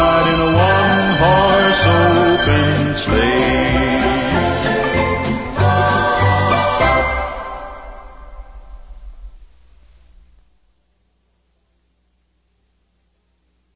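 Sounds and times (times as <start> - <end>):
Christmas song: 0.0 - 9.3.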